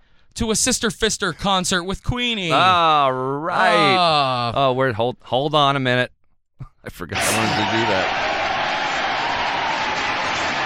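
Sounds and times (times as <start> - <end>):
speech: 0.4 - 6.2, 6.8 - 8.4
applause sound effect: 7.2 - 10.6.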